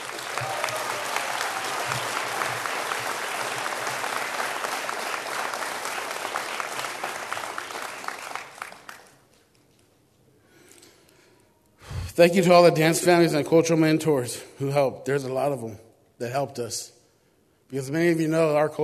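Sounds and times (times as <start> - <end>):
audience applause: 0.0 - 9.4
speech: 12.2 - 17.0, 17.7 - 18.8.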